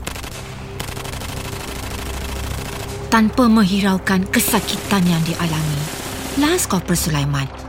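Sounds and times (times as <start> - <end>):
sustained gunfire from an armoured vehicle's weapon fired manually: 0.0 - 3.5
speech: 3.1 - 7.6.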